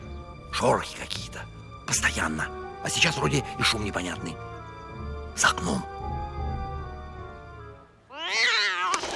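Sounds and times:
speech: 0:00.6 - 0:04.5, 0:05.4 - 0:05.9
cat meowing in an animated cartoon: 0:08.1 - 0:09.1.

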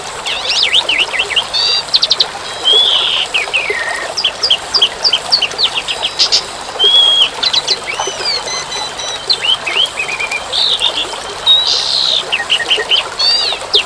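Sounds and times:
bird song: 0:00.0 - 0:13.8.

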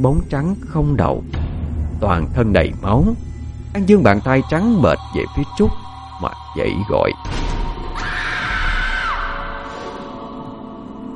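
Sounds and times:
speech: 0:00.0 - 0:01.4, 0:02.0 - 0:07.5
girl screaming in terror: 0:08.0 - 0:09.6.

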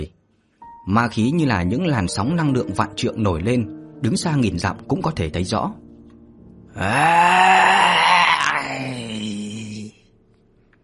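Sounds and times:
speech: 0:00.8 - 0:05.8, 0:06.8 - 0:07.9
deep guttural roaring growl: 0:06.8 - 0:09.9.

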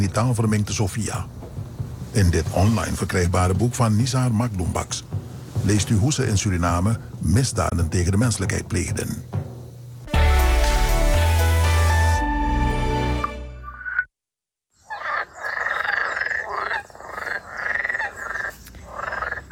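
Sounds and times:
speech: 0:00.0 - 0:01.4, 0:02.1 - 0:09.4
short burst of music: 0:10.1 - 0:13.7
green frogs croaking together in a marshy nature garden in Goudse Hout: 0:14.8 - 0:19.5.

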